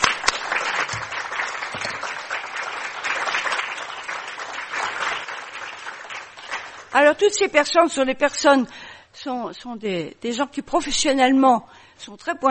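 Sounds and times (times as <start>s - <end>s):
audience applauding: 0.0s - 7.0s
speech: 7.0s - 12.4s.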